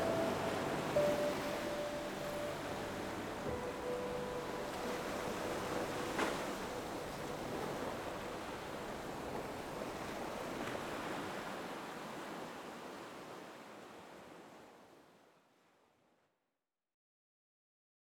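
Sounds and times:
healing rest piano music: 0.0s - 10.0s
ocean waves: 0.0s - 15.2s.

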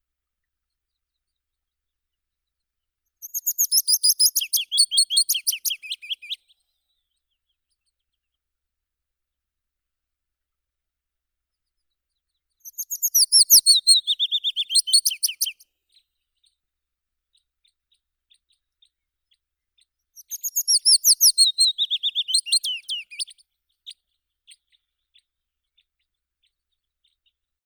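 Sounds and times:
Phylloscopus trochilus willow warbler singing: 3.2s - 6.4s, 12.6s - 15.6s, 20.2s - 23.4s.

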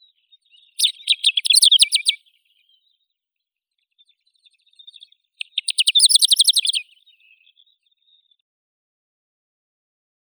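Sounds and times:
Calandrella brachydactyla lark singing: 0.8s - 2.2s, 5.4s - 7.0s.

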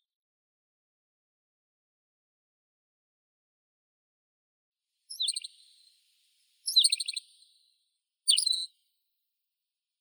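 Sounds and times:
tawny pipit Anthus campestris: 5.1s - 7.5s, 8.3s - 8.7s.

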